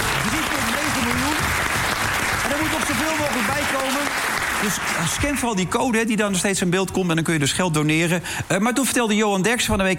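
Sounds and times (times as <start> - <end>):
applause: 0.0 - 5.6
speech: 3.1 - 9.9.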